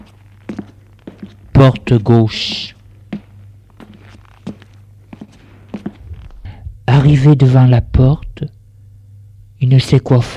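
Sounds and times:
footsteps climbing stairs: 0.0s - 1.6s, 2.3s - 6.4s
low constant hum: 0.0s - 10.3s
speech: 1.6s - 2.8s, 7.1s - 8.6s, 9.6s - 10.3s.

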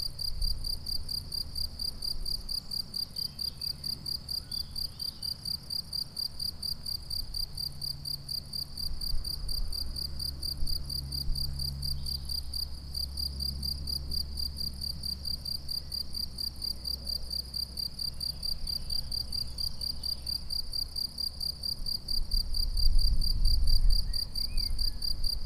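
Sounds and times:
crickets chirping: 0.0s - 25.4s.

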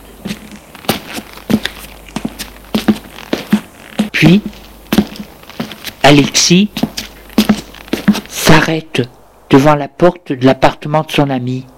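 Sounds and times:
footsteps climbing stairs: 0.0s - 8.6s
speech: 4.2s - 4.6s, 6.1s - 6.8s, 8.7s - 11.7s.

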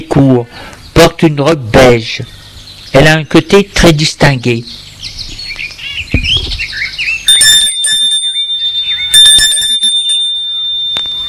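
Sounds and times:
speech: 0.0s - 5.2s
bell rung at a gate: 7.3s - 11.2s.

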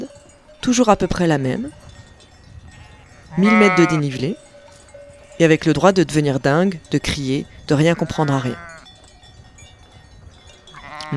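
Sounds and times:
rural background: 0.0s - 11.1s
speech: 0.7s - 1.8s, 3.3s - 4.4s, 5.4s - 8.7s
sheep bleating: 2.7s - 4.3s, 7.8s - 8.8s, 10.7s - 11.1s.

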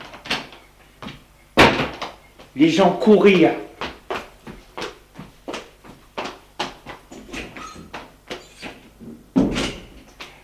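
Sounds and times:
speech: 2.6s - 3.7s
doors slamming: 9.4s - 10.0s.

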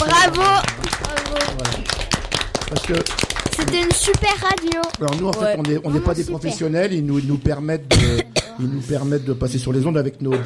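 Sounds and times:
audience clapping: 0.0s - 6.4s
speech: 2.8s - 10.4s.

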